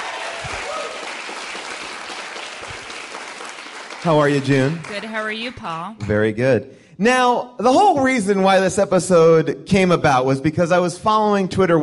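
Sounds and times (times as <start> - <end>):
live audience applause welcoming a guest to the stage: 0.0 - 5.5
speech: 4.0 - 11.8.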